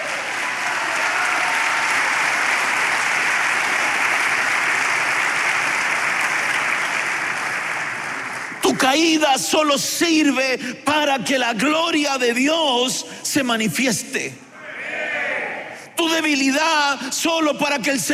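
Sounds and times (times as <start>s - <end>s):
audience clapping hands: 0.0s - 9.4s
speech: 8.8s - 14.4s, 16.0s - 18.1s.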